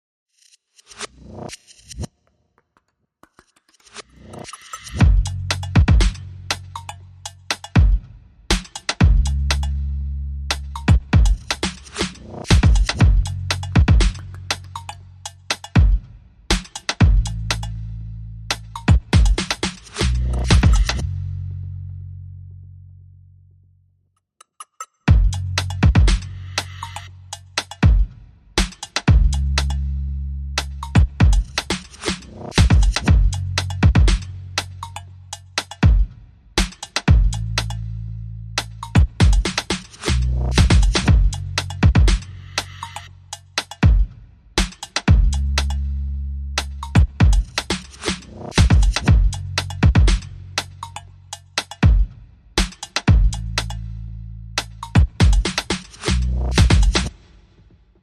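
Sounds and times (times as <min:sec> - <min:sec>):
bass: 0:01.1 - 0:02.1, 0:04.0 - 0:24.0, 0:25.1 - 0:36.0, 0:36.6 - 0:44.0, 0:44.6 - 0:52.0, 0:52.6 - 0:57.1
drums: 0:04.6 - 0:06.6, 0:07.5 - 0:09.7, 0:10.5 - 0:14.2, 0:15.5 - 0:17.7, 0:18.6 - 0:21.0, 0:25.1 - 0:27.0, 0:30.6 - 0:35.0, 0:35.6 - 0:37.8, 0:38.6 - 0:42.7, 0:43.6 - 0:45.8, 0:46.6 - 0:51.0, 0:51.6 - 0:53.8, 0:54.6 - 0:58.0.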